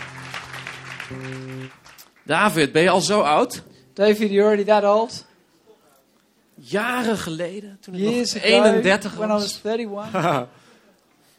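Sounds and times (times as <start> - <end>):
audience applauding the band: 0.0 - 2.3
speech: 1.1 - 5.3, 6.6 - 10.6
laughter: 10.0 - 10.6.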